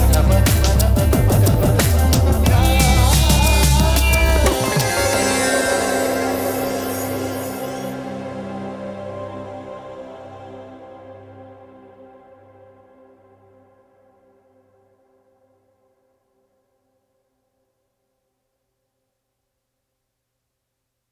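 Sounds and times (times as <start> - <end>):
chill lounge music: 0.0 - 11.4.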